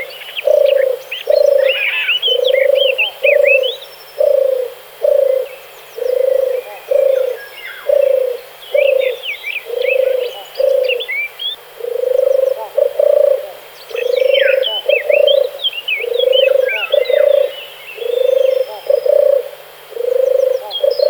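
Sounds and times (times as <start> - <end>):
dove purring: 0.0 - 11.1, 11.8 - 21.0.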